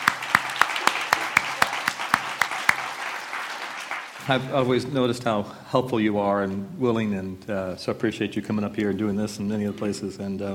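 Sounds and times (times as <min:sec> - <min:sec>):
audience applause: 0:00.0 - 0:04.7
speech: 0:04.3 - 0:10.5.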